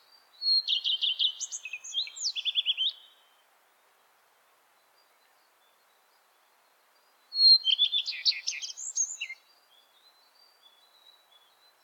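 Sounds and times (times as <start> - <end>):
bird song with high twittering, chirps and trills: 0.4 - 3.1, 7.0 - 11.8.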